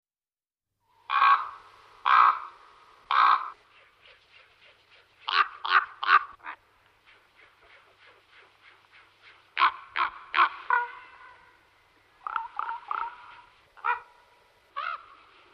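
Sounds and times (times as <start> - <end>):
common raven croaking and cawing: 1.0 - 3.6, 5.3 - 6.6, 9.6 - 15.5.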